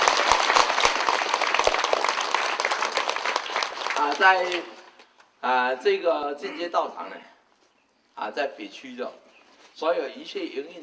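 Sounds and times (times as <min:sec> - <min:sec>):
audience at a Buddhist temple gathering applauding: 0:00.0 - 0:05.0
speech: 0:04.2 - 0:04.8, 0:05.4 - 0:07.3, 0:08.2 - 0:09.2, 0:09.8 - 0:10.8.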